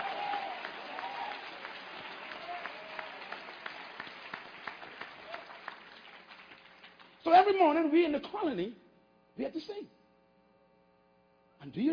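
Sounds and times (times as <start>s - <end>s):
audience clapping hands: 0.0s - 7.5s
speech: 7.3s - 8.8s, 9.4s - 10.0s, 11.6s - 11.9s.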